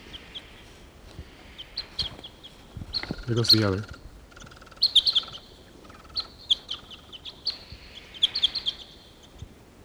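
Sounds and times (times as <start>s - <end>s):
wild bird chirping in tree: 1.6s - 9.4s
speech: 3.3s - 4.0s.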